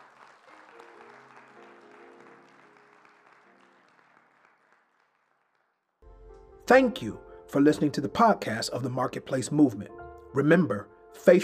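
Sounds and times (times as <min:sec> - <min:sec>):
audience clapping hands: 0:00.0 - 0:06.5
speech: 0:06.7 - 0:11.4.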